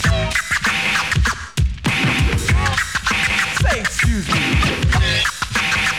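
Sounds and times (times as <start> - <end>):
DJ turntable scratching a record: 0.0 - 5.9.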